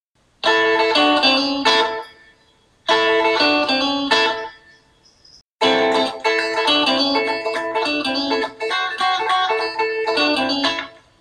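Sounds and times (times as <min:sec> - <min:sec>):
rockabilly guitar lick: 0:00.4 - 0:02.2, 0:02.9 - 0:04.5, 0:05.6 - 0:11.1.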